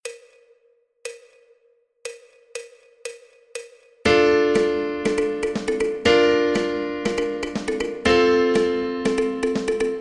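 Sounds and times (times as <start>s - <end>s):
fast piano intro: 4.1s - 9.9s.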